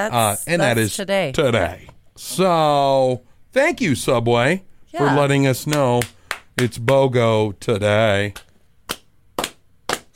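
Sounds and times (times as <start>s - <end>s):
speech: 0.0s - 8.4s
slow clap: 5.7s - 7.0s, 8.4s - 10.1s.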